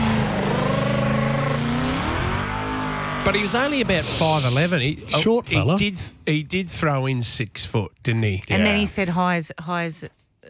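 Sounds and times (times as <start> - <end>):
Mustang car engine revving: 0.0 - 6.3
speech: 3.3 - 10.4.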